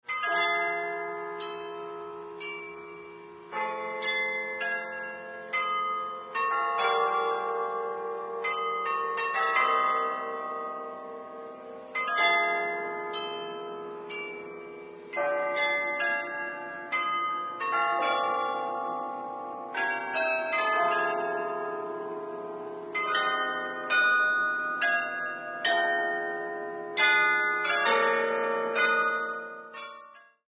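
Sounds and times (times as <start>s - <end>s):
carillon bells: 0.1s - 30.4s.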